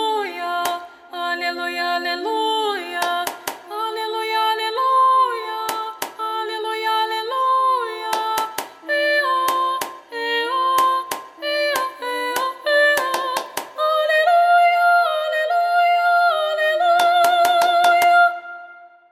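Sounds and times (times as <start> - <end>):
voice: 0.0 - 18.4.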